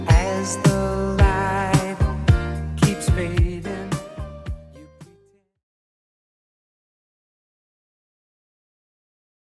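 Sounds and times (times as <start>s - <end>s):
80s-style beat at 110 bpm: 0.0s - 5.2s.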